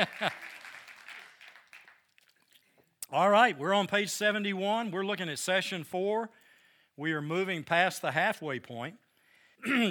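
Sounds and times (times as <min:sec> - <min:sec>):
speech: 0:00.0 - 0:00.6, 0:03.1 - 0:06.4, 0:07.0 - 0:09.0, 0:09.6 - 0:09.8
audience applause: 0:00.0 - 0:02.1.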